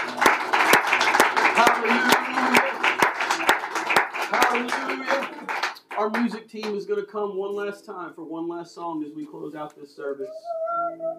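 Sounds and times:
crowd cheering: 0.0 - 6.2
audience clapping hands in a steady rhythm: 0.0 - 6.8
murmur of voices: 0.2 - 5.6
speech: 6.0 - 11.1.

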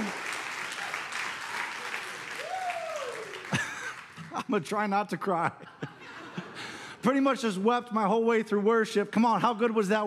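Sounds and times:
church audience cheering and applauding: 0.0 - 4.5
laughter: 3.3 - 4.8, 5.4 - 7.0
speech: 4.5 - 5.9, 7.0 - 10.0.

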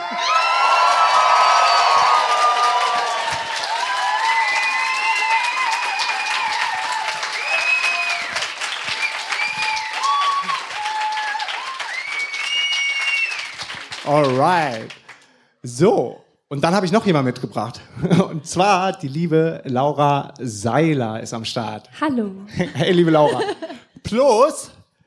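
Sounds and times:
whoops and high-pitched shouts: 0.0 - 13.5
large live crowd clapping: 0.0 - 15.5
speech: 14.1 - 15.0, 15.6 - 24.8
laughter: 17.8 - 18.7, 22.5 - 23.9.

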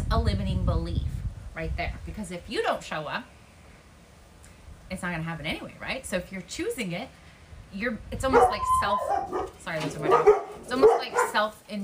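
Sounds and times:
speech: 0.1 - 3.4, 4.9 - 11.8
dogs barking at people driving by: 8.2 - 11.8
dogs whining: 8.3 - 11.4.

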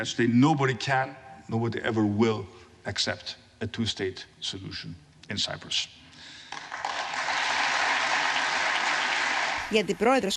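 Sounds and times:
speech: 0.0 - 6.0, 9.7 - 10.3
applause in the Congress chamber: 6.3 - 9.7.

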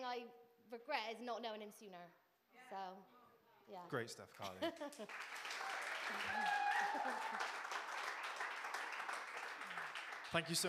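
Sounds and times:
speech: 0.1 - 7.6, 10.3 - 10.6
audience applause: 5.0 - 10.6.

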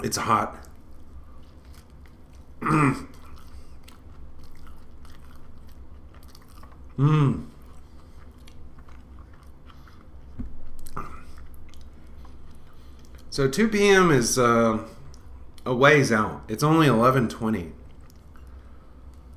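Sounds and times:
speech: 0.0 - 0.7, 2.6 - 3.2, 7.0 - 7.5, 13.4 - 15.0, 15.6 - 17.8
person chewing a spicy egg tortilla wrap: 0.5 - 13.3, 14.9 - 15.6, 17.8 - 19.3.

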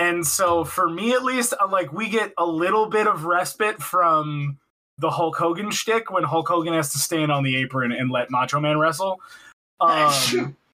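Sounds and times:
speech: 0.1 - 10.6
loud voiced sneeze: 9.9 - 10.6.

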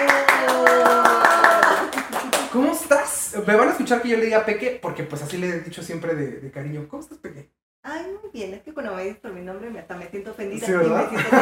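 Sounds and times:
audience applause: 0.0 - 2.6
speech: 3.4 - 11.3.

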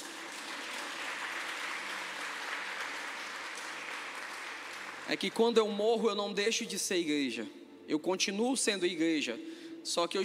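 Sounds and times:
audience applause: 0.0 - 5.5
speech: 5.1 - 10.2.

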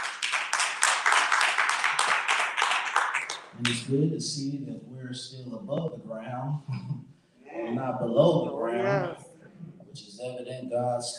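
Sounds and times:
audience hand clapping: 0.0 - 3.9
speech: 3.6 - 11.1.

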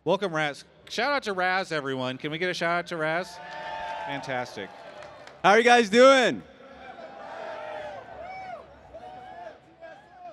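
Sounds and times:
speech: 0.0 - 4.8, 5.4 - 6.5
crowd noise and babble at a live event: 3.4 - 10.3
crowd chanting at a live event: 6.5 - 8.2.

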